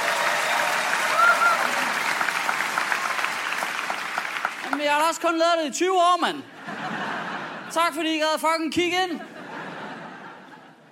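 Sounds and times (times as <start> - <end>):
audience clapping: 0.0 - 5.4
speech: 4.8 - 6.5, 7.7 - 9.3
laughter: 6.6 - 8.0, 9.1 - 10.9.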